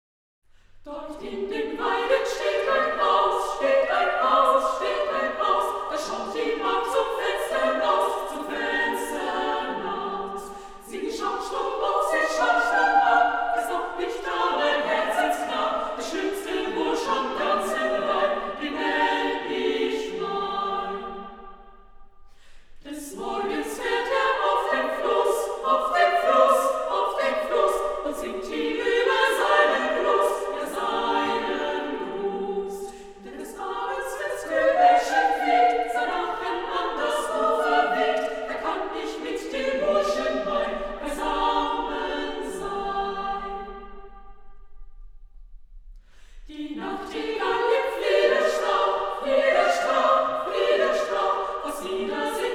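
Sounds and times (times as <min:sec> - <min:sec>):
three- to four-part women's choir singing a folk song: 0:00.8 - 0:44.9, 0:46.1 - 0:52.5.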